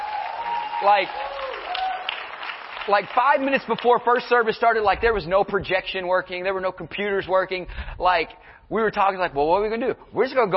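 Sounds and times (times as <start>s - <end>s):
church congregation clapping in praise for the sound team: 0.0s - 4.5s
speech: 0.8s - 1.5s, 2.9s - 10.5s.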